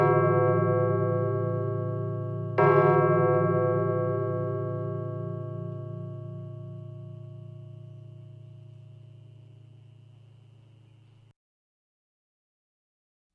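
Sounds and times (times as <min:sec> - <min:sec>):
church clock striking 12 o'clock: 0:00.0 - 0:10.4.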